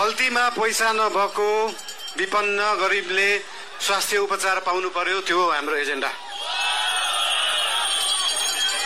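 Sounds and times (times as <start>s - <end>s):
speech: 0.1s - 6.6s
crowd whistling at a prime minister's speech: 6.2s - 8.8s.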